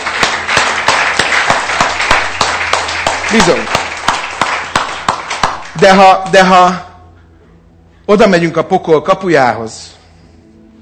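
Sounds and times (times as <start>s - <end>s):
audience applauding: 0.0s - 6.4s
speech: 3.3s - 3.8s, 5.8s - 6.9s, 8.1s - 10.0s.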